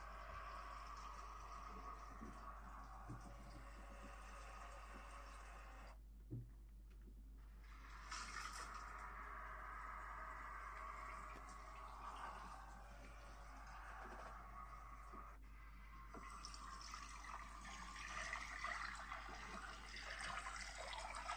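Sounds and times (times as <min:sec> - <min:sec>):
running water rinsing a customer's hair during a hair wash: 0:00.0 - 0:06.0, 0:07.6 - 0:21.3
low constant hum: 0:00.0 - 0:16.2.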